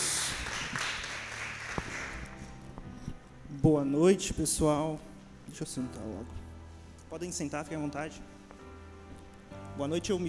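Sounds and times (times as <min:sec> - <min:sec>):
crowd applauding: 0:00.0 - 0:02.5
speech: 0:03.6 - 0:06.4, 0:07.1 - 0:08.3, 0:09.8 - 0:10.2.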